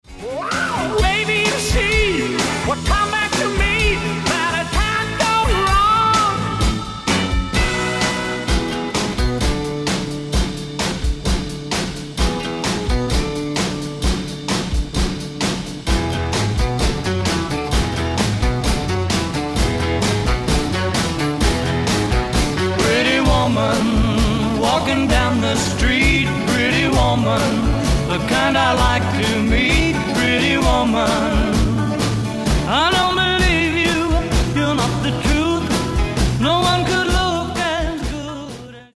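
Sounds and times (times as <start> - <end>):
1960s classic music mix: 0.0 - 38.9.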